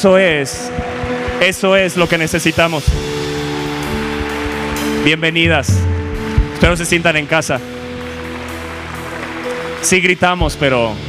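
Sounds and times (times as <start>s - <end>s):
speech: 0.0s - 3.2s, 5.0s - 6.0s, 6.6s - 7.8s, 9.8s - 11.0s
crowd applauding: 0.0s - 11.0s
dull low thumps: 2.8s - 7.1s.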